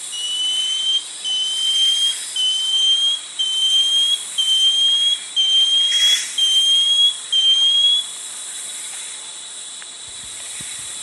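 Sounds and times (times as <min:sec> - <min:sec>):
Banded Antbird whistled call: 0:00.1 - 0:08.0.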